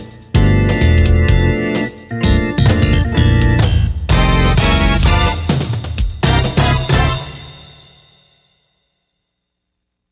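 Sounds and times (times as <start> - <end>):
Roland SC-8850 music remix: 0.0 - 7.6.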